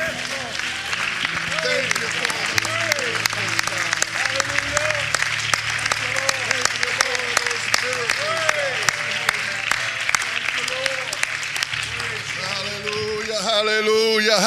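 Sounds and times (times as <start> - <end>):
audience clapping hands: 0.0 - 14.4.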